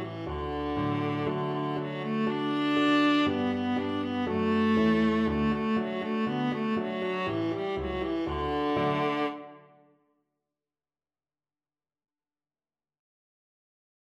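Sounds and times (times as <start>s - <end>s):
viola: 0.0s - 9.8s.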